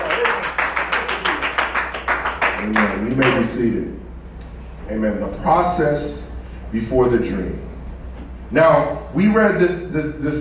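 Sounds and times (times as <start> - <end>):
audience clapping hands: 0.0 - 3.7
speech: 2.6 - 4.1, 4.9 - 7.7, 8.5 - 10.3.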